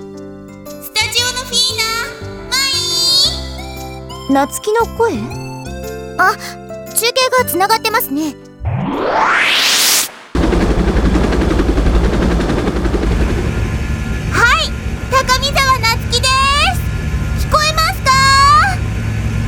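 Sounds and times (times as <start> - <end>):
speech: 1.1 - 2.2, 4.3 - 5.4, 6.2 - 8.4, 9.0 - 9.8
helicopter flying over Mitsurugasaki: 8.8 - 19.4.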